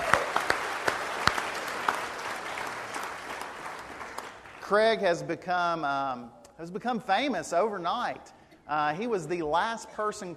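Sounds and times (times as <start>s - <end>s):
round of applause: 0.0s - 4.8s
speech: 4.7s - 10.3s.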